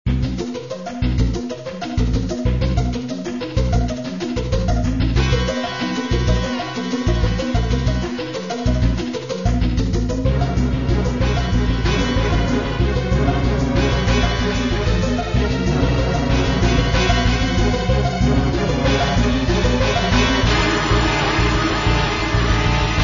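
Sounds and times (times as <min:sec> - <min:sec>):
scary music: 0:00.1 - 0:23.0.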